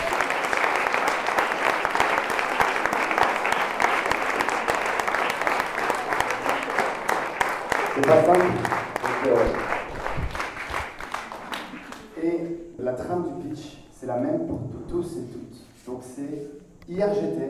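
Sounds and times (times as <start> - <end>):
voices cheering: 0.0 - 9.6
audience applause for young pitchers: 0.0 - 12.2
speech: 8.1 - 9.7, 13.0 - 17.4.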